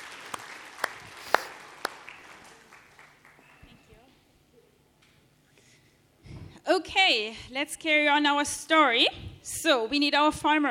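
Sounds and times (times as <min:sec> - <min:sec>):
audience applause: 0:00.0 - 0:03.7
speech: 0:06.7 - 0:10.6.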